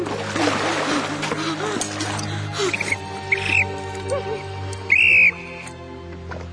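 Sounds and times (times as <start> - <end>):
water splashing and sloshing: 0.0 - 5.6
whistle blown shakily: 4.9 - 5.7.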